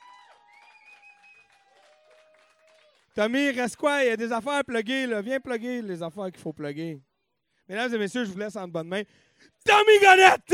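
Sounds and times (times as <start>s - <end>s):
audience applause: 0.0s - 3.1s
speech: 3.2s - 7.1s, 7.7s - 10.5s.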